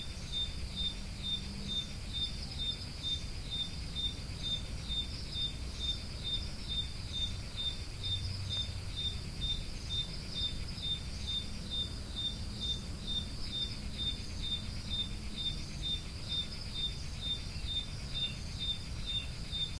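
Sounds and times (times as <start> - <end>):
cricket chirping: 0.0 - 19.7.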